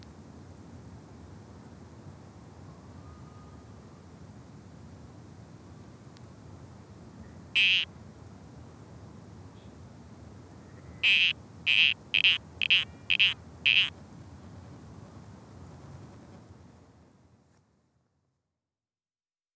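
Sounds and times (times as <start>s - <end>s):
spotted grass frog calling in Australia: 7.6s - 7.9s, 11.0s - 13.9s.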